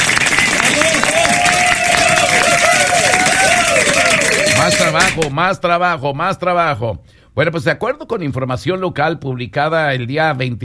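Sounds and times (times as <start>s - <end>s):
crowd clapping and cheering: 0.0s - 5.3s
overlapping voices: 0.0s - 5.4s
speech: 5.2s - 10.6s.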